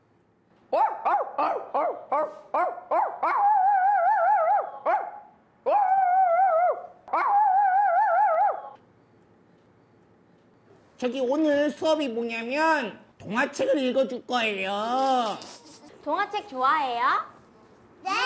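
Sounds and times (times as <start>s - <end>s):
person imitating small puppy yips: 0.8s - 5.1s, 5.7s - 8.8s
person imitating howl-like dog whines: 3.2s - 4.8s, 5.7s - 8.8s
speech: 11.0s - 17.3s.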